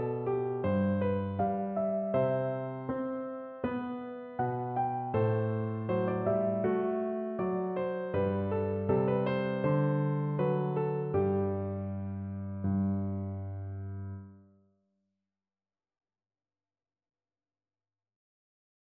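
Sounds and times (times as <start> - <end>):
piano duet of an aria: 0.0 - 14.5.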